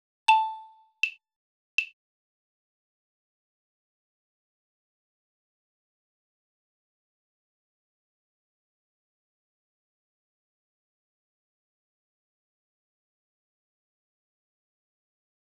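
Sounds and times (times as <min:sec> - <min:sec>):
click track: 0:00.3 - 0:01.2.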